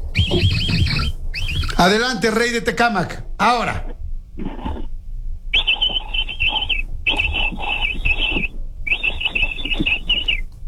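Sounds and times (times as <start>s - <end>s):
person imitating capybara call: 0.0s - 1.9s, 5.6s - 10.4s
speech: 1.8s - 4.5s.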